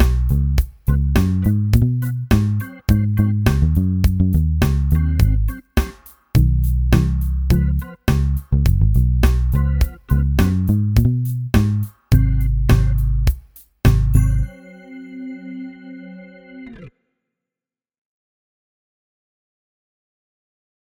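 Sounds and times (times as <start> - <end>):
bass: 0.0 - 5.7, 6.4 - 14.5
R&B music: 0.0 - 16.8.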